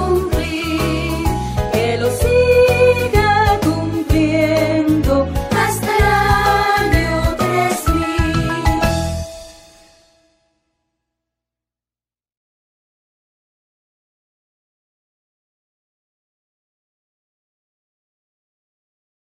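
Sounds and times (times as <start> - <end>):
birthday song in Spanish: 0.0 - 10.0.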